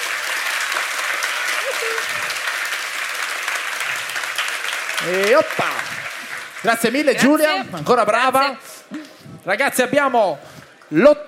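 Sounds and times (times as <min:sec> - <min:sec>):
audience applause: 0:00.0 - 0:08.2
speech: 0:05.0 - 0:06.0, 0:06.6 - 0:08.7, 0:09.4 - 0:11.2.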